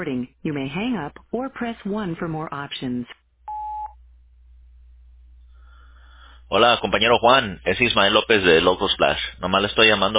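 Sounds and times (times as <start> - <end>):
speech: 0.0 - 3.2, 6.5 - 10.1
low constant hum: 0.0 - 10.1
voicemail system beep signalling start of recording: 3.5 - 4.0.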